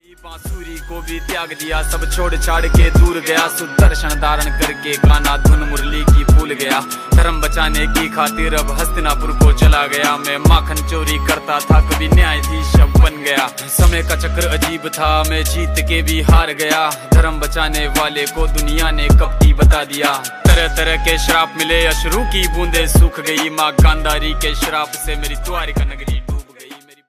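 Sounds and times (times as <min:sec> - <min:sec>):
ringtone: 0:00.3 - 0:27.0.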